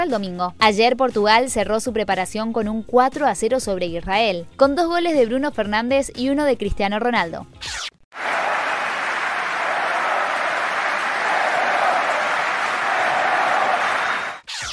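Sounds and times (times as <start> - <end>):
speech: 0.0 - 8.3
ovation applause at Roland Garros centre court: 8.2 - 14.4.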